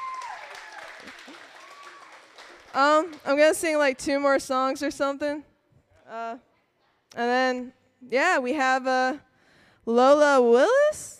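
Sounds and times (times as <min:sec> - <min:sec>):
audience applause: 0:00.0 - 0:03.3
speech: 0:02.8 - 0:05.5, 0:06.1 - 0:06.5, 0:07.1 - 0:11.1.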